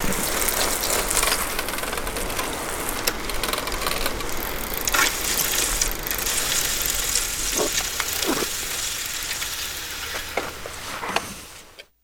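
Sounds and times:
bicycle stopping: 0.0 - 12.0.

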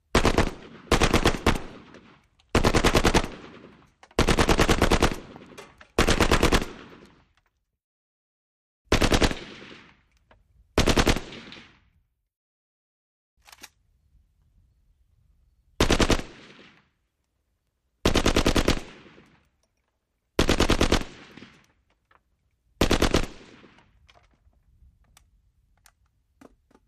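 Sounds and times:
AK47 long bursts: 0.1 - 7.2, 8.9 - 9.9, 10.8 - 11.6, 15.8 - 16.8, 18.0 - 19.6, 20.4 - 21.8, 22.8 - 24.0.

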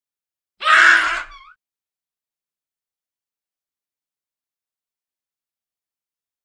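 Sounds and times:
baboon short scream: 0.6 - 1.6.

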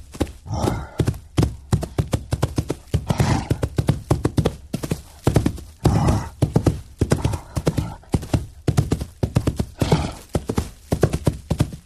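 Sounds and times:
wild rhinoceros charging: 0.4 - 11.8.

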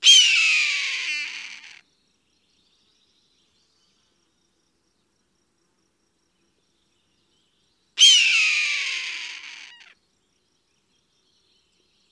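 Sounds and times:
hawk giving a harsh hoarse scream: 0.0 - 1.8, 8.0 - 9.9.

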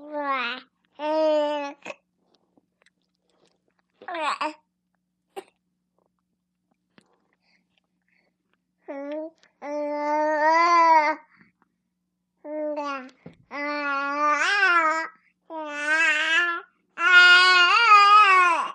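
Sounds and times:
four-month-old baby girl babbling indoors: 0.0 - 2.0, 8.9 - 11.3, 12.4 - 18.7.

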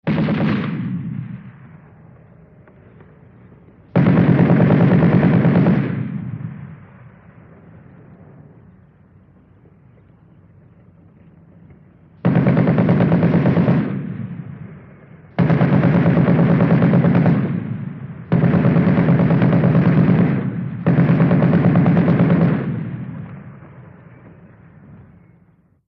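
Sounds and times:
machine gun rapid fire: 0.0 - 1.4, 3.9 - 6.7, 12.2 - 23.3.

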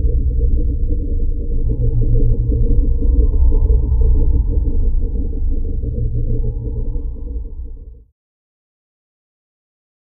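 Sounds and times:
deep slow breathing: 0.2 - 8.0.

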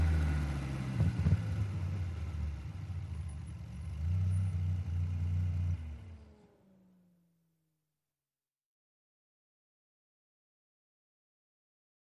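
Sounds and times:
sports car driving over 100 mph: 0.0 - 7.2.

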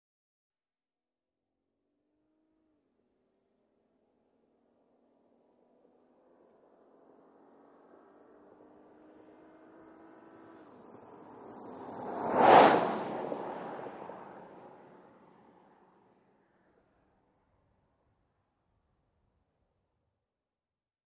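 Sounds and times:
SUV driving by at 100 mph from the left: 9.0 - 16.0.

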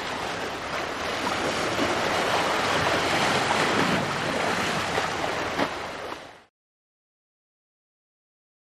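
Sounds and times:
ship bow wash: 0.0 - 6.5.

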